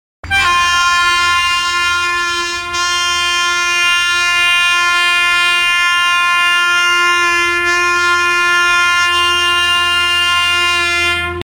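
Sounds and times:
WAP 7 locomotive horn: 0:00.2 - 0:11.5.

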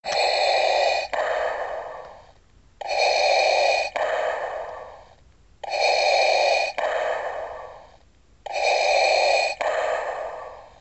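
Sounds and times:
Darth Vader respirator breathing: 0:00.0 - 0:10.7.

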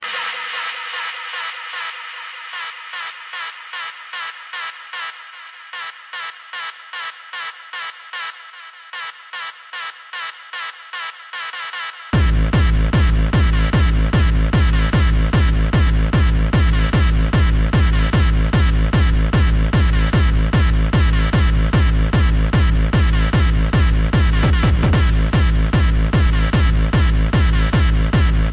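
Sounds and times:
hardstyle music: 0:00.0 - 0:28.5.

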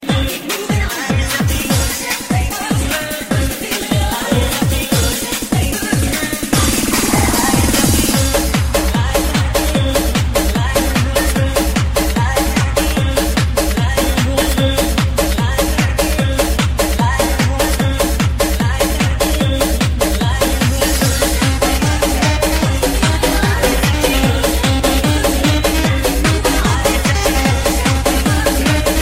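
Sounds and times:
dance music mix: 0:00.0 - 0:29.0.

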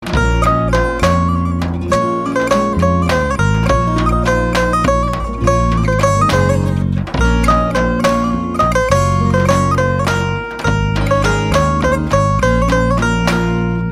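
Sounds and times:
saz: 0:00.0 - 0:13.9.

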